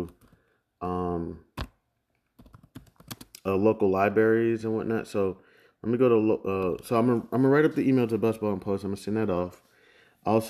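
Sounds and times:
speech: 0.8s - 1.5s, 3.4s - 10.4s
computer keyboard typing while an email is composed: 2.4s - 3.4s.

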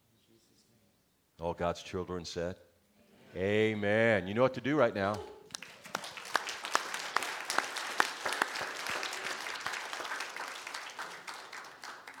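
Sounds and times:
speech: 1.4s - 2.7s, 3.3s - 5.4s
audience applauding: 5.5s - 12.1s.

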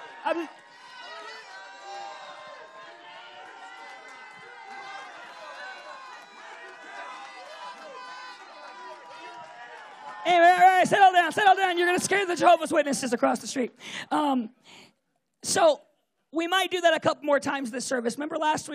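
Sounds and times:
audience shouting and cheering in praise: 0.0s - 13.0s
speech: 0.2s - 0.7s, 10.3s - 18.7s.

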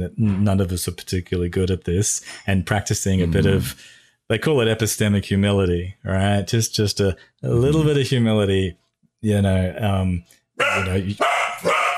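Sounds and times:
speech: 0.0s - 11.8s
pet dog barking and yelping: 10.6s - 11.9s.

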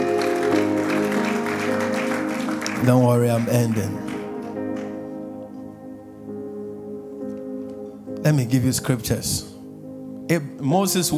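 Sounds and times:
audience clapping: 0.0s - 5.2s
speech: 2.8s - 4.1s, 8.2s - 9.5s, 10.3s - 11.1s.

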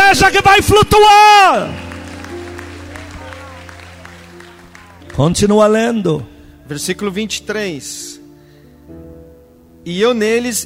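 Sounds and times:
sustained organ-like musical tone: 0.0s - 7.1s
speech: 0.2s - 1.8s, 5.2s - 8.2s, 9.8s - 10.6s
audience applause: 1.5s - 5.5s.

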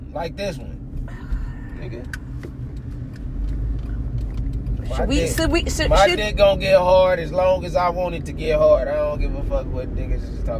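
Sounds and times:
car being driven: 0.0s - 10.5s
speech: 0.2s - 0.8s, 1.8s - 2.6s, 4.8s - 10.5s
sharp clicks and ticks: 2.0s - 4.8s.

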